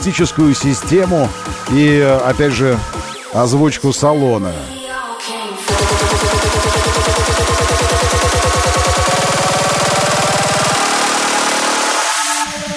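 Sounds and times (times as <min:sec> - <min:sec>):
speech: 0:00.0 - 0:04.8
car engine starting, revving and idling: 0:05.7 - 0:12.5.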